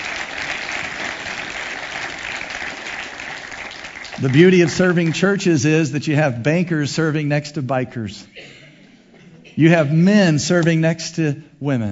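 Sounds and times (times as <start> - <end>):
audience clapping hands: 0.0 - 5.8
speech: 4.2 - 8.6, 9.6 - 11.9.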